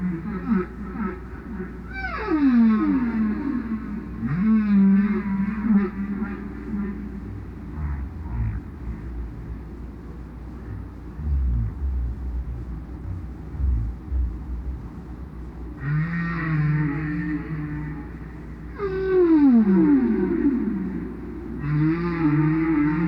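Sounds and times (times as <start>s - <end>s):
whale song: 0.0s - 23.0s
low rumble: 7.4s - 15.8s.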